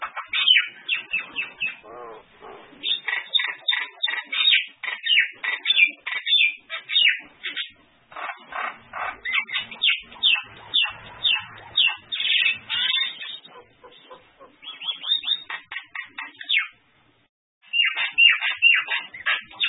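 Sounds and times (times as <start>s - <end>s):
bird song: 0.0s - 16.8s, 17.6s - 19.6s.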